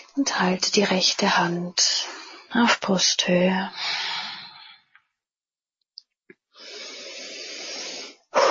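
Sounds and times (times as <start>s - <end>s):
speech: 0.2s - 4.1s
slow deliberate breathing in and out during a guided breathing exercise: 3.7s - 5.0s, 6.6s - 8.4s.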